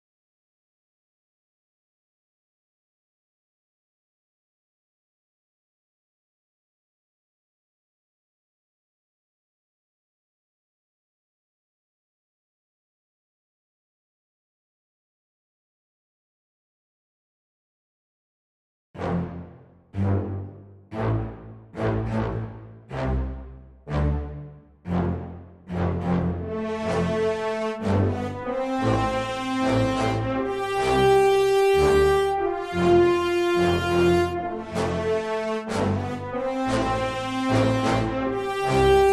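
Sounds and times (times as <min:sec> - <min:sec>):
brass instruments: 0:19.0 - 0:39.1.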